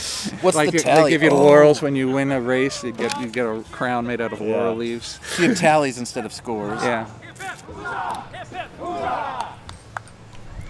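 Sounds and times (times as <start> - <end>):
speech: 0.2 - 9.4
team cheer hip hip huzzah: 0.8 - 3.6, 6.0 - 10.6.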